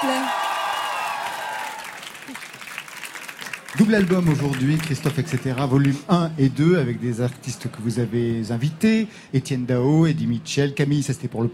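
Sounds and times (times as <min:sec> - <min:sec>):
audience applause: 0:00.0 - 0:06.1
speech: 0:03.8 - 0:11.5.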